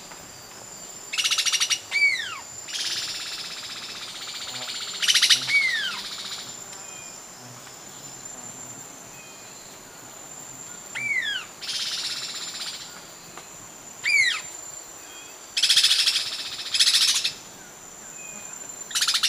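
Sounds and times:
Immaculate Antbird calling in Ecuador: 1.1s - 6.6s, 10.9s - 13.0s, 14.0s - 17.4s.

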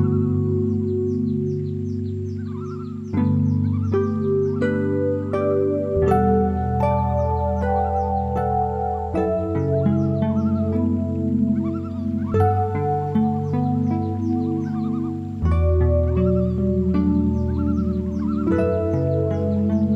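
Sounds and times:
loon tremolo: 0.0s - 19.9s.

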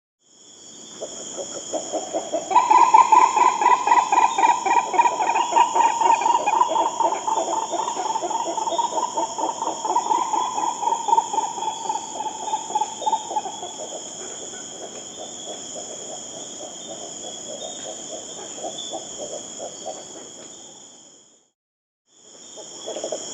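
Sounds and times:
green ibis giving rolling hooting calls in South America: 1.6s - 14.9s.

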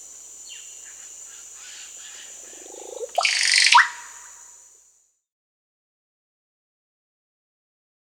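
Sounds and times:
Russet-backed Oropendola Psarocolius angustifrons calling in Peru: 0.0s - 4.6s.

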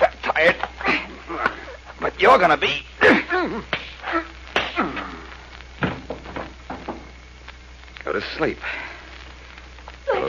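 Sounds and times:
speech: 0.4s - 0.7s, 2.2s - 4.2s, 8.2s - 8.9s
bare-handed punches in a fight: 4.6s - 5.2s, 5.8s - 7.1s.

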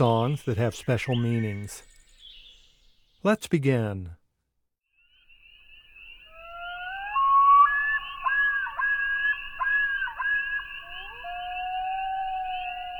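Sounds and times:
speech: 0.0s - 1.9s, 3.2s - 4.2s
calls of the common loon: 6.3s - 12.9s.

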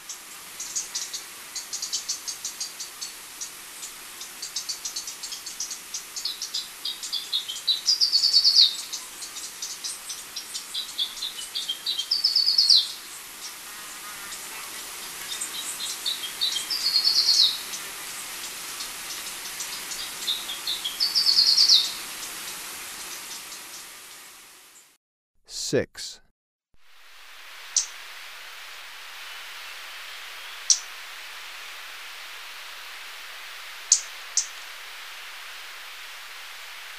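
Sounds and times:
steady hiss: 0.0s - 24.9s, 26.8s - 36.9s
Black-crested Warbler singing: 4.4s - 13.6s, 14.2s - 22.0s
speech: 25.7s - 25.9s.

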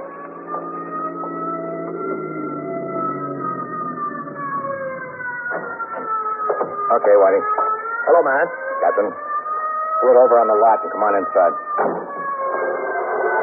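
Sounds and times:
approaching ambulance siren: 0.0s - 13.4s
speech: 7.0s - 9.3s, 10.0s - 12.2s.

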